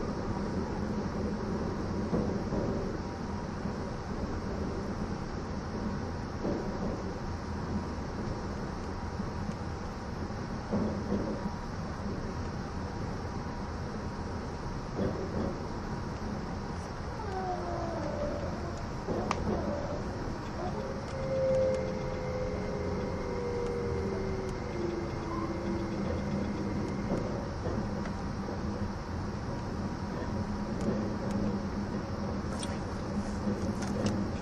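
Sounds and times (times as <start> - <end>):
E261 series Saphir Odoriko No. 1 train running: 0.0 - 34.4
whining tones sliding downward: 16.8 - 28.8.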